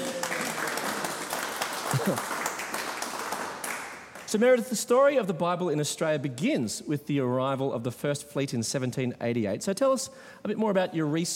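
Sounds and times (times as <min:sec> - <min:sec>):
audience applause: 0:00.0 - 0:04.4
speech: 0:02.0 - 0:02.4, 0:04.3 - 0:11.3.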